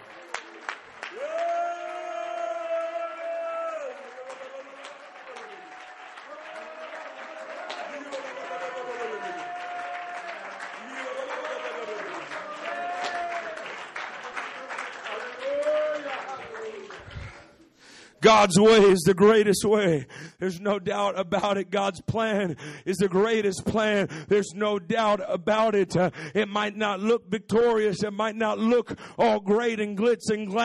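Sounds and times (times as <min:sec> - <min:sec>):
audience clapping hands: 0:00.0 - 0:17.9
speech: 0:18.3 - 0:30.6.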